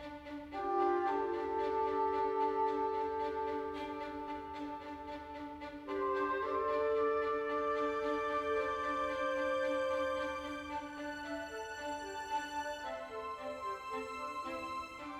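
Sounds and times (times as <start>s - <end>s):
world music: 0.3s - 15.1s.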